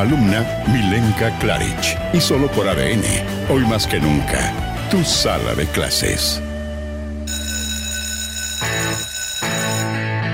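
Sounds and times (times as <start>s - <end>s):
speech: 0.0s - 6.5s
school bell ringing: 7.3s - 10.2s.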